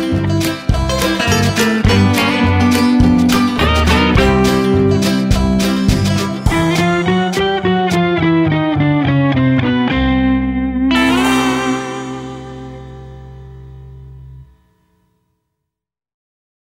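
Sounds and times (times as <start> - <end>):
banjo: 0.0 - 9.4, 10.8 - 14.4
steel guitar: 0.0 - 14.6.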